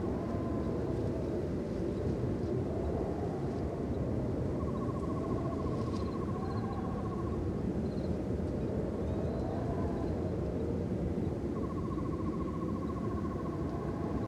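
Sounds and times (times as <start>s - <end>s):
podrace ambience: 0.0s - 14.2s.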